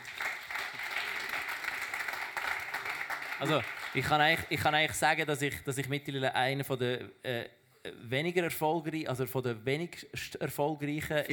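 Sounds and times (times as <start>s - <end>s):
audience applause: 0.0s - 4.4s
speech: 3.4s - 11.3s.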